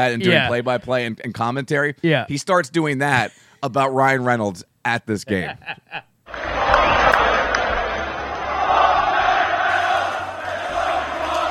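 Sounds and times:
speech: 0.0s - 6.6s
whole stadium crowd singing: 6.3s - 11.4s.

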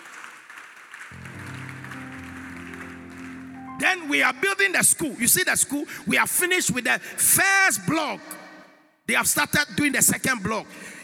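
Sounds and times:
audience clapping: 0.0s - 4.6s
speech: 3.8s - 8.4s, 9.1s - 11.0s.

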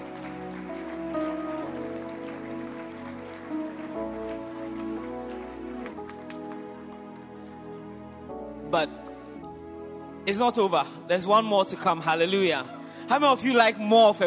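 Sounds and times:
audience clapping hands: 0.0s - 8.2s
speech: 8.7s - 9.0s, 10.3s - 14.2s.

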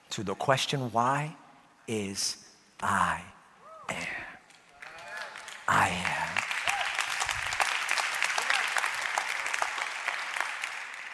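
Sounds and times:
speech: 0.2s - 4.1s
audience applause: 4.8s - 11.1s.

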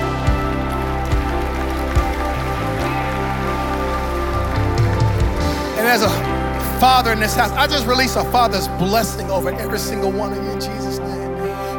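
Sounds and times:
audience clapping: 0.0s - 9.2s
sustained musical tones: 0.0s - 11.7s
speech: 5.9s - 11.0s.

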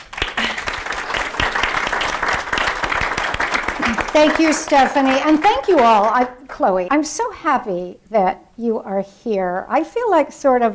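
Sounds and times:
audience applause welcoming two speakers on stage at a book talk: 0.0s - 6.3s
speech: 3.9s - 10.7s.

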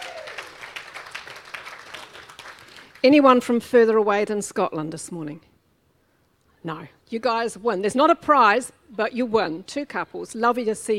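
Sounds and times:
audience clapping: 0.0s - 3.0s
speech: 3.0s - 5.5s, 6.6s - 10.9s.

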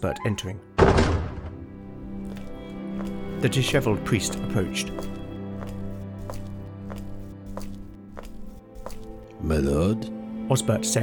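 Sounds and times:
speech: 0.0s - 1.2s, 3.4s - 5.2s, 9.4s - 11.0s
door opening: 0.0s - 2.4s.

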